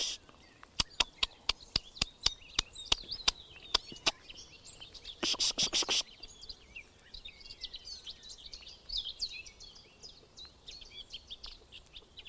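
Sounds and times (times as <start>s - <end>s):
Garden warbler song: 0.0s - 12.2s.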